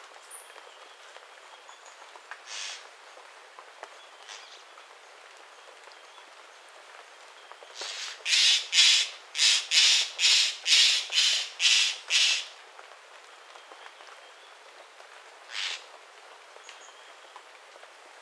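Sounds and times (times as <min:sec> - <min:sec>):
bird giving harsh raspy squawks: 0:02.5 - 0:02.8, 0:07.8 - 0:12.5, 0:15.5 - 0:15.8.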